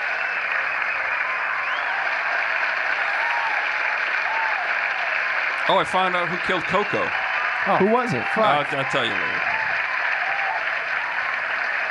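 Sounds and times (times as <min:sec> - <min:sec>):
audience applause: 0:00.0 - 0:11.8
faint whoops or cheers: 0:01.0 - 0:04.9, 0:09.2 - 0:11.8
speech: 0:05.7 - 0:09.5.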